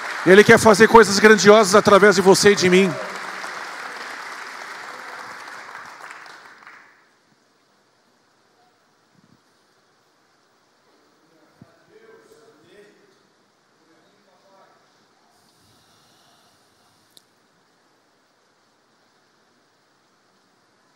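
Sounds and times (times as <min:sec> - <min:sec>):
crowd applauding: 0:00.0 - 0:07.2
speech: 0:00.2 - 0:03.1.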